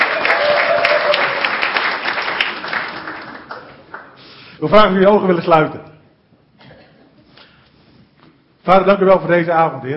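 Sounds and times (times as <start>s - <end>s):
audience applause: 0.0s - 4.2s
speech: 4.6s - 5.9s, 8.7s - 9.9s.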